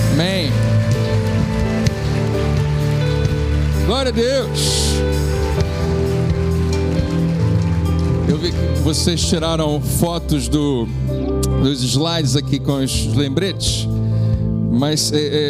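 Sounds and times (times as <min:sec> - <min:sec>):
crowd applauding: 0:00.0 - 0:10.2
speech: 0:03.9 - 0:05.2, 0:08.4 - 0:14.0, 0:14.7 - 0:15.4.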